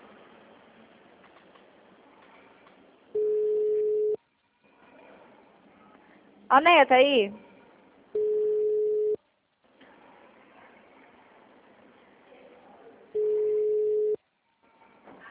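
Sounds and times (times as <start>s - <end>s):
ringback tone of an unanswered telephone call: 3.2s - 4.2s, 8.2s - 9.2s, 13.2s - 14.2s
speech: 6.5s - 7.4s.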